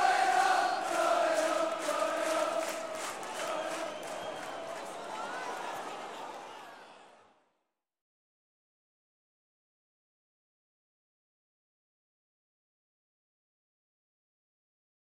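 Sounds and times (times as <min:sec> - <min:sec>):
sports crowd cheering a goal scored: 0:00.0 - 0:07.5.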